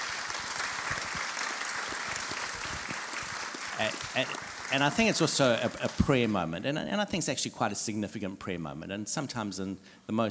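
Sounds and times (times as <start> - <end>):
audience applause: 0.0 - 6.5
speech: 3.8 - 10.2.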